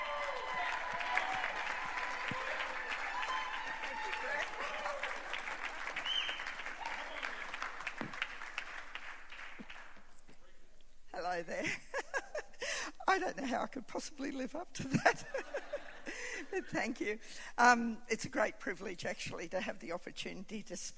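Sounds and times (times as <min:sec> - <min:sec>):
scattered cheers and voices: 0:00.0 - 0:05.3
audience applause welcoming a speaker: 0:00.0 - 0:10.0
laughter: 0:11.6 - 0:12.7, 0:14.8 - 0:17.0
speech: 0:13.2 - 0:15.4, 0:16.5 - 0:20.9.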